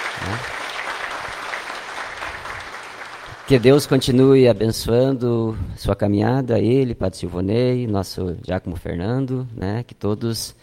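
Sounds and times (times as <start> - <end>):
audience applause: 0.0 - 4.2
speech: 3.5 - 10.6.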